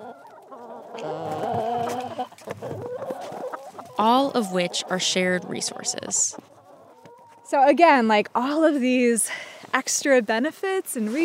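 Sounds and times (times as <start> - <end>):
chickens clucking: 0.0 - 8.3
speech: 4.0 - 6.5, 7.5 - 11.2.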